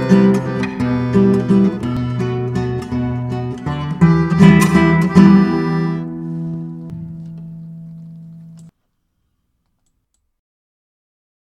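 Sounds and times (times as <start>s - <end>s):
karaoke music: 0.0s - 7.5s.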